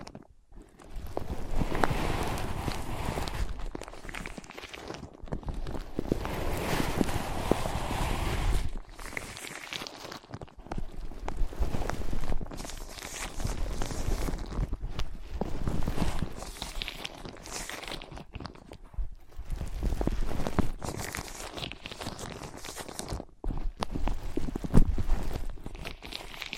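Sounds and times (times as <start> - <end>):
scratching on ear pads: 0.0 - 26.5.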